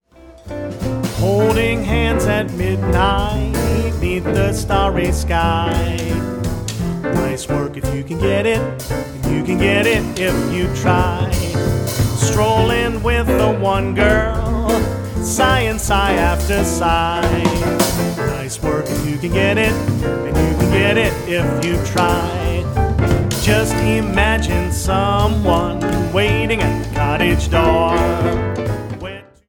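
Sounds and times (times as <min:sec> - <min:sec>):
jazz band playing: 0:00.1 - 0:29.4.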